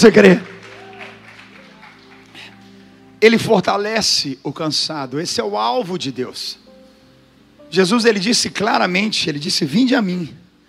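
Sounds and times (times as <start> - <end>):
speech: 0.0 - 0.5, 3.2 - 6.6, 7.7 - 10.4
audience clapping: 0.0 - 3.1
audience shouting: 0.6 - 2.0.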